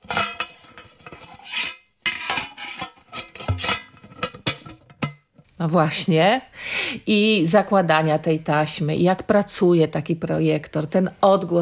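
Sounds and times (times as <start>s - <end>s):
tin film reel canister being pried open: 0.0s - 5.3s
speech: 5.6s - 11.5s.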